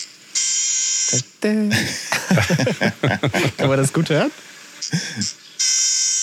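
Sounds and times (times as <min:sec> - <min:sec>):
trumpeter finch calls: 0:00.0 - 0:01.6, 0:03.6 - 0:06.2
speech: 0:01.1 - 0:05.4
laughter: 0:01.7 - 0:04.2, 0:04.9 - 0:05.3.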